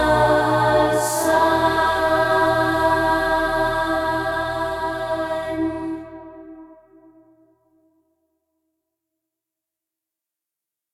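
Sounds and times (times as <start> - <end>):
choir singing: 0.0 - 7.3.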